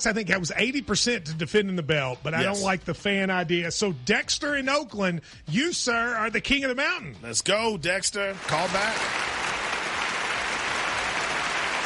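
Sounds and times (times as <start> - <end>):
speech: 0.0 - 9.4
applause sound effect: 8.2 - 11.8.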